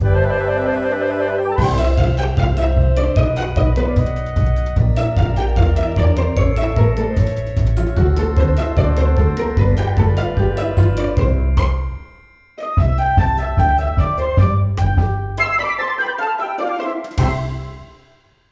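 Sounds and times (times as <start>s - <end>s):
music: 0.0s - 18.4s.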